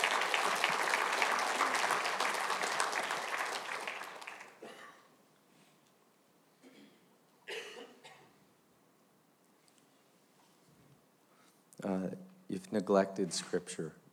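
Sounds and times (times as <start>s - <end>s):
audience clapping: 0.0s - 4.6s
people coughing: 4.6s - 5.2s, 6.6s - 8.4s
speech: 12.7s - 14.0s.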